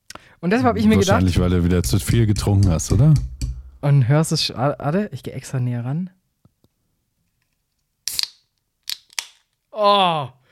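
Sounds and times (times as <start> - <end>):
speech: 0.4 - 6.2, 9.8 - 10.4
small beer can being opened: 8.0 - 9.5.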